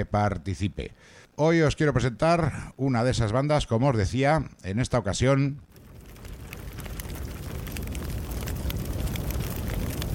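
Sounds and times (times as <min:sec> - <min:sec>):
speech: 0:00.0 - 0:05.8
crackling fire: 0:05.6 - 0:10.1.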